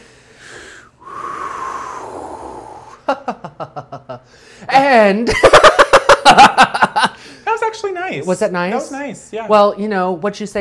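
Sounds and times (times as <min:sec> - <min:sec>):
deep breathing exercise: 0:00.0 - 0:03.1, 0:04.2 - 0:04.7
speech: 0:03.1 - 0:03.4, 0:04.3 - 0:05.7, 0:07.9 - 0:10.6
laughter: 0:03.1 - 0:04.3, 0:05.3 - 0:07.2.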